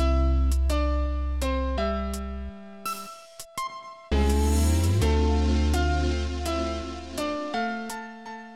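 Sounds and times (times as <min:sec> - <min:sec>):
song remake: 0:00.0 - 0:02.8, 0:04.1 - 0:07.8.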